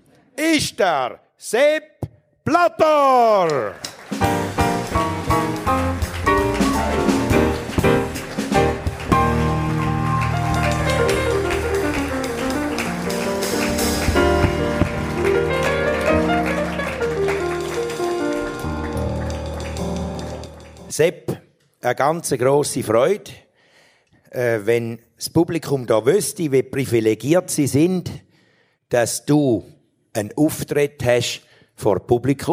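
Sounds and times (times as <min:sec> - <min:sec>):
speech: 0:00.4 - 0:04.3, 0:21.0 - 0:21.2, 0:21.8 - 0:23.4, 0:24.3 - 0:28.3, 0:28.9 - 0:32.5
roaring applause from studio audience: 0:03.6 - 0:20.9
music playing: 0:04.0 - 0:20.9.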